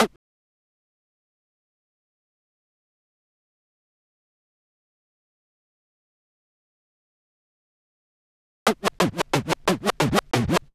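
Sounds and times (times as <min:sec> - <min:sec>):
scratching: 0:08.7 - 0:10.7.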